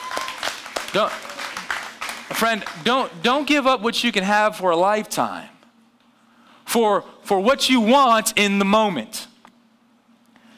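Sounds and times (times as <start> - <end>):
audience clapping: 0.0 - 3.6
speech: 0.9 - 1.4, 2.3 - 5.6, 6.7 - 9.2.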